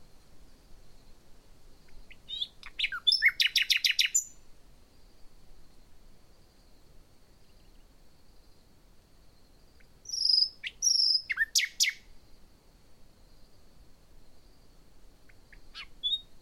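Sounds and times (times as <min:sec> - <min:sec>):
common nightingale singing: 0:01.8 - 0:08.0, 0:09.4 - 0:12.4, 0:14.4 - 0:16.4.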